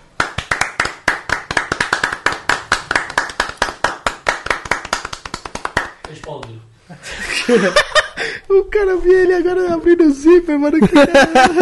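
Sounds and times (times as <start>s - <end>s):
hands clapping: 0.2s - 6.7s
speech: 6.2s - 7.9s, 8.5s - 11.6s
laughter: 6.8s - 8.4s, 10.8s - 11.6s.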